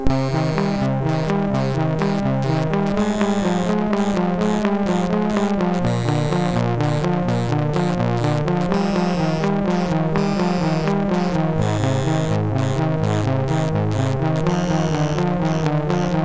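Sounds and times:
SID chip MOS6581R4 music: 0:00.1 - 0:16.2.

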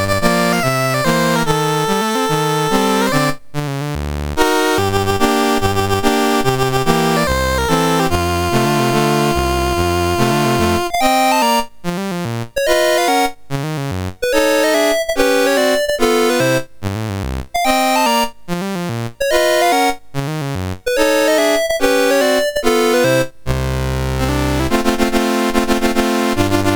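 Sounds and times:
MOS6581R4 chip music: 0:00.0 - 0:26.7.

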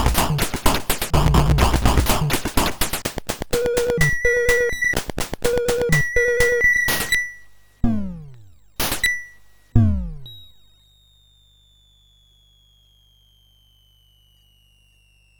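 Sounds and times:
MOS6581R4 synthesized drum: 0:00.0 - 0:09.2, 0:09.8 - 0:10.3.

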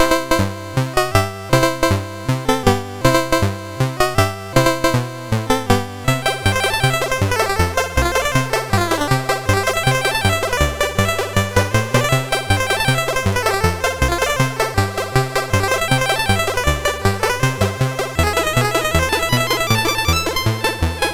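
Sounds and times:
chiptune game music on a CSG8580R5 sound chip: 0:00.0 - 0:21.1.

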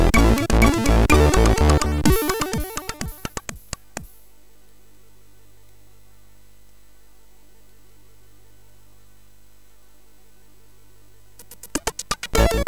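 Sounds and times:
SID chiptune on MOS6581R3: 0:00.0 - 0:04.1, 0:11.4 - 0:12.6.

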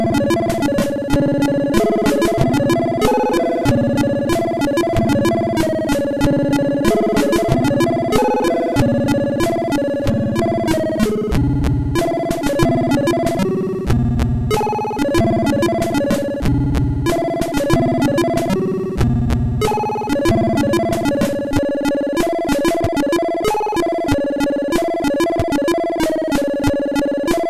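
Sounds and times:
orchestral music on MOS6581R2 sound chip: 0:00.0 - 0:27.4.

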